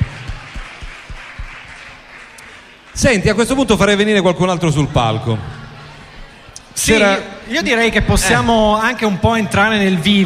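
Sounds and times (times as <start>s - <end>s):
audience applause: 0.0s - 4.0s
speech: 3.0s - 5.6s, 6.8s - 10.2s.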